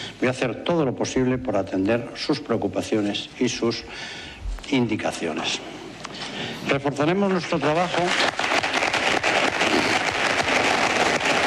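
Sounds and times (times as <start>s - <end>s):
speech: 0.2s - 5.8s, 6.6s - 8.4s
audience applause at election event: 7.6s - 11.4s.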